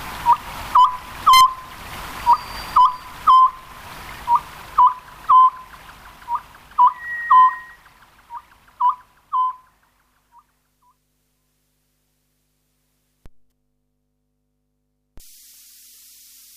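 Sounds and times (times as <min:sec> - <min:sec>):
Oriental scops owl hooting: 0:00.2 - 0:10.5.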